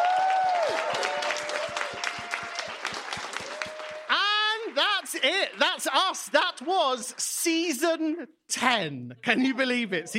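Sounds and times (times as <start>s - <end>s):
whoops and cheers: 0.0s - 4.2s
crowd clapping: 0.0s - 7.8s
speech: 5.2s - 10.1s.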